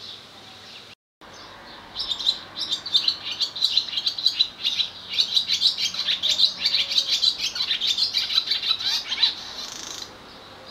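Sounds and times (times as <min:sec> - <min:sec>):
swallow twittering: 0:02.0 - 0:10.1.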